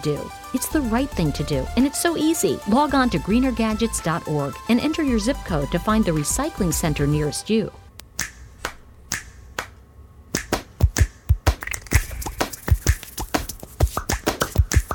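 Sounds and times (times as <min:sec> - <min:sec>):
speech: 0:00.0 - 0:07.8
finger snaps in music made with hand sounds: 0:08.0 - 0:09.8, 0:10.4 - 0:11.8
hand claps in music made with hand sounds: 0:08.2 - 0:09.8, 0:10.4 - 0:14.9.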